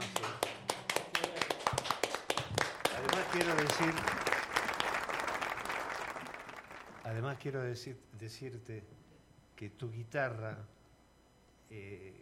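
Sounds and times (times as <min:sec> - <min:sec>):
audience applause: 0:00.0 - 0:07.1
speech: 0:03.3 - 0:04.3, 0:07.1 - 0:09.0, 0:09.6 - 0:10.8, 0:11.7 - 0:12.2.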